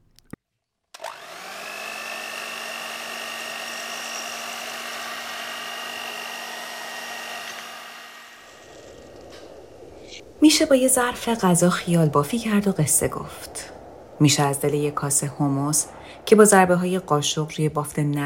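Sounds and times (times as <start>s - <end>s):
blender running: 1.0s - 8.8s
speech: 10.4s - 18.2s.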